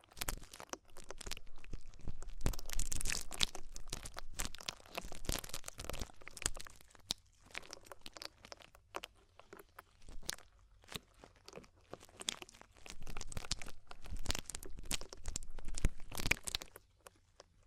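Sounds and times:
ear-cleaning crunching, crinkling and scratchy rubbing: 0.0 - 17.5.

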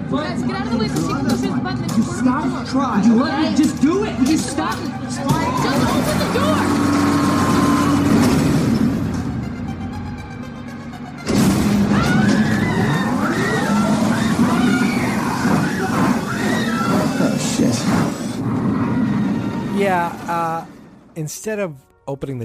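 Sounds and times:
speech: 0.1 - 6.8, 19.9 - 22.4
super speed underground elevator plunging down shaft: 5.3 - 9.6, 11.2 - 21.1.

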